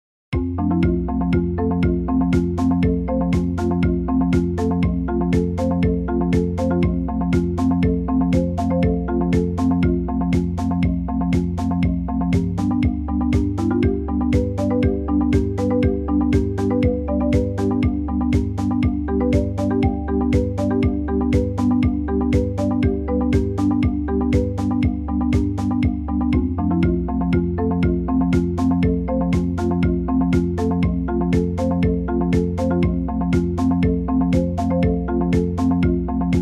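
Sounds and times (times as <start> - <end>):
marimba: 0.4 - 36.3.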